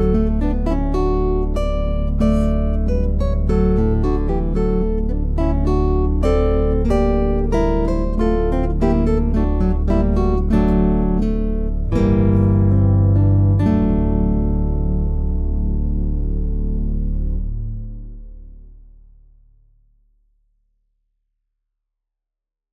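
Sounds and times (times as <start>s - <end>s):
two guitars playing allegro moderato: 0.0s - 17.3s.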